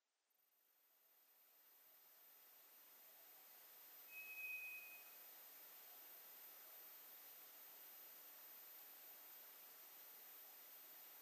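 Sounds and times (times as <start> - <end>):
background hiss: 0.8 - 11.2
White's thrush thin high whistle: 4.0 - 5.3.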